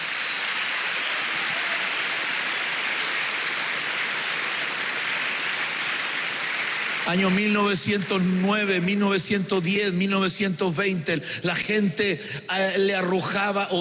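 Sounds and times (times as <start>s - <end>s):
audience clapping: 0.0s - 9.1s
speech: 7.1s - 13.7s.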